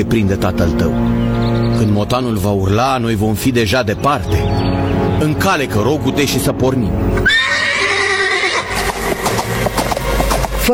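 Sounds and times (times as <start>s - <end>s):
speech: 0.0s - 7.4s
horse whinnying: 7.2s - 9.9s
hoofbeats: 7.2s - 10.7s.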